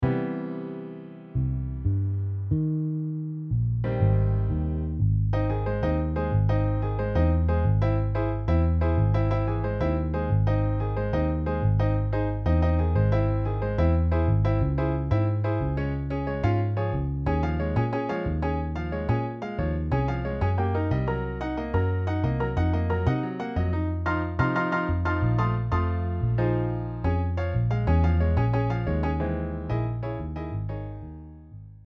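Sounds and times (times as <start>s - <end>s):
MIDI piano and bass: 0.0s - 31.8s.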